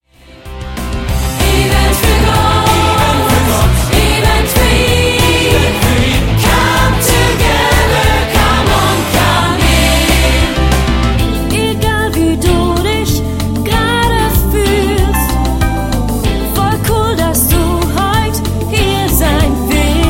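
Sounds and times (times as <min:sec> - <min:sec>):
groovy vocals: 0:01.4 - 0:10.6, 0:11.4 - 0:20.0.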